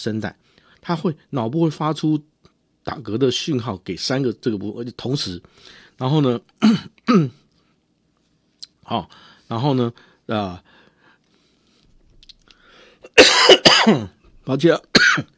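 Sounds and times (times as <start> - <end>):
speech: 0.0 - 7.4, 8.9 - 10.7, 13.2 - 15.3
person with a cold clearing throat: 6.6 - 7.4, 13.1 - 14.2
person with a cold coughing: 6.6 - 7.4, 13.0 - 14.2, 14.9 - 15.3.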